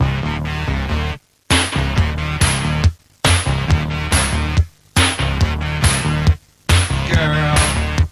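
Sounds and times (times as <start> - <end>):
intro music: 0.0 - 8.1.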